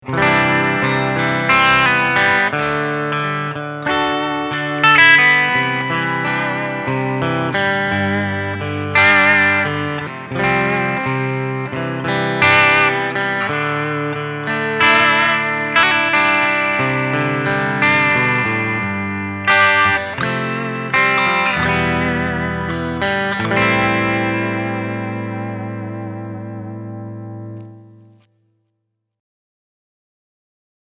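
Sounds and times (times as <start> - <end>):
clean guitar picking: 0.0 - 28.4.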